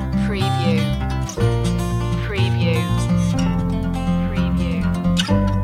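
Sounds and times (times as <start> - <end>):
music loop: 0.1 - 5.5.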